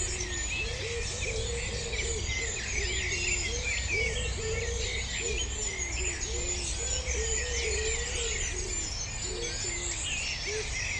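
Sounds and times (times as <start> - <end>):
dawn chorus of many birds singing: 0.0 - 10.9.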